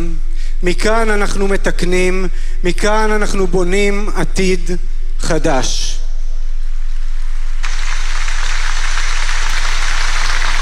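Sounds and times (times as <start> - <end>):
speech: 0.6 - 6.0
stormy applause from the audience: 7.6 - 10.6.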